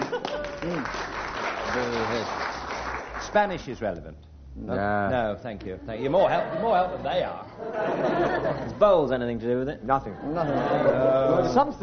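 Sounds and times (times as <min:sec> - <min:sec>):
laughter: 0:00.0 - 0:00.9, 0:06.1 - 0:09.0, 0:10.0 - 0:11.8
round of applause: 0:00.0 - 0:03.4
speech: 0:03.3 - 0:11.8.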